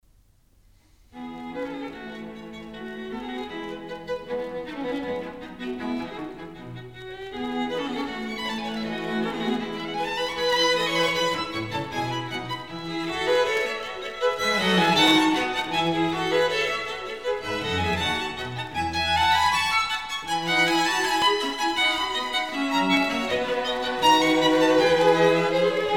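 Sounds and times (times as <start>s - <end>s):
string quartet playing: 1.2s - 25.9s.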